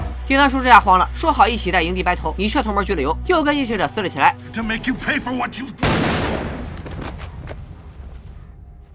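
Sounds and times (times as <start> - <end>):
speech: 0.3 - 6.0
gunshot in a horror TV drama scene: 5.8 - 7.8.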